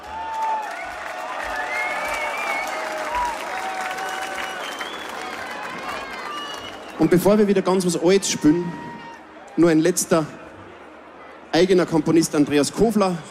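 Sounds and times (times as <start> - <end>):
audience applause: 0.0 - 7.9
speech: 7.0 - 9.0, 9.6 - 10.4, 11.6 - 13.2.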